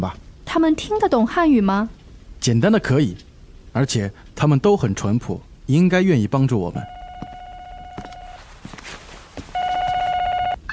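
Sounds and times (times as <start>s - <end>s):
speech: 0.0s - 7.0s
telephone ringing with an anonymous tip call: 6.8s - 8.5s, 9.6s - 10.7s.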